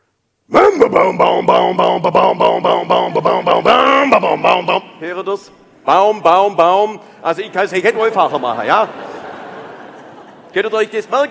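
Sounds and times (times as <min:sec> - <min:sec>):
voice imitating a two-stroke chainsaw starting up: 0:00.5 - 0:04.8
speech: 0:00.8 - 0:09.1, 0:10.5 - 0:11.2
laughter: 0:07.4 - 0:11.2.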